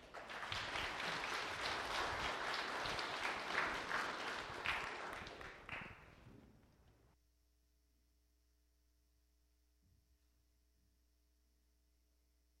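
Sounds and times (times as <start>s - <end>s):
audience applause: 0.0s - 6.2s.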